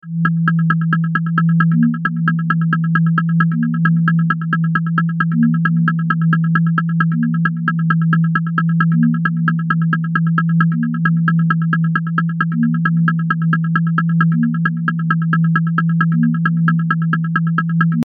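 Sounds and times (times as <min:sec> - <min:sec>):
groove music: 0:00.1 - 0:18.0.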